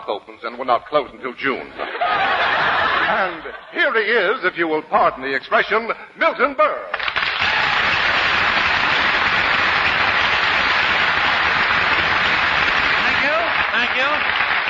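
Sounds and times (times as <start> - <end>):
speech: 0.0 - 7.0
laughter: 1.7 - 4.0
studio audience applause at an old radio variety show: 6.9 - 14.6.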